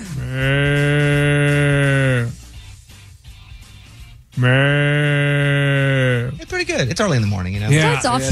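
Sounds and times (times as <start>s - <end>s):
person imitating water buffalo calls: 0.0s - 2.4s, 4.3s - 6.4s
speech: 4.4s - 4.7s, 6.7s - 8.2s.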